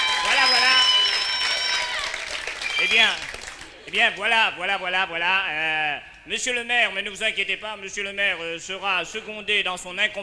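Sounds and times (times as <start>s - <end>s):
audience applause: 0.0s - 3.8s
speech: 2.8s - 10.2s.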